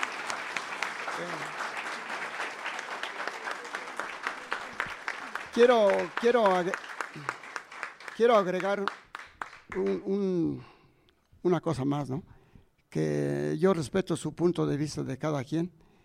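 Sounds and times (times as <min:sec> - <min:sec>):
audience applause: 0:00.0 - 0:10.0
speech: 0:05.6 - 0:07.4, 0:08.2 - 0:09.0, 0:09.7 - 0:10.7, 0:11.4 - 0:12.3, 0:12.9 - 0:15.8.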